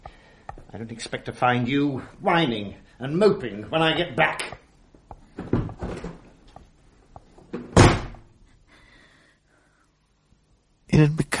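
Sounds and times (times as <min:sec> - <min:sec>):
speech: 0:00.7 - 0:04.6
door slamming shut: 0:07.6 - 0:08.3.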